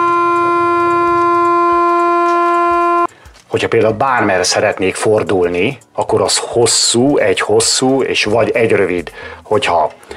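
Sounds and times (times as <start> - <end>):
long horn signal: 0.0 - 3.1
speech: 3.6 - 10.1.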